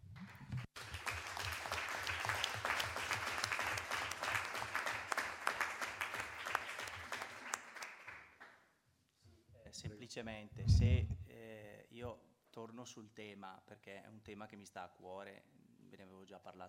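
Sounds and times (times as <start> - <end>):
audience applause: 0.3 - 8.4
speech: 9.8 - 16.6.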